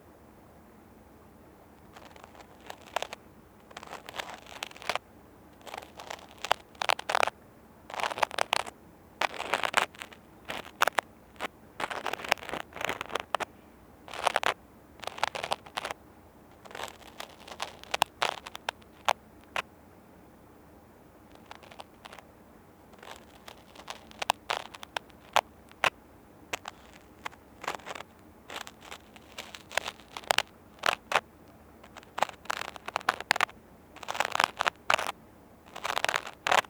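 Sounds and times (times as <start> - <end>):
cotton swab with natural baby oil cleaning right ear: 2.0 - 5.0, 5.6 - 7.3, 7.9 - 13.5, 14.1 - 16.0, 16.6 - 19.6, 21.3 - 22.2, 23.0 - 25.9, 26.6 - 31.2, 31.8 - 36.6.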